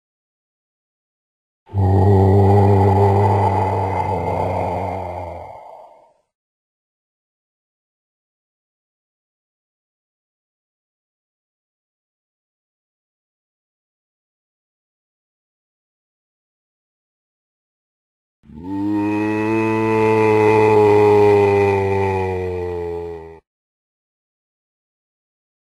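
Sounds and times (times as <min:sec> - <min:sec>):
zombie: 0:01.7 - 0:06.1, 0:18.5 - 0:23.4.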